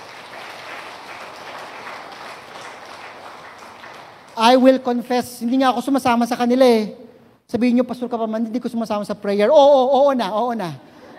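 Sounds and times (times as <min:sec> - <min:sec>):
audience clapping: 0:00.0 - 0:06.0
speech: 0:04.4 - 0:10.9.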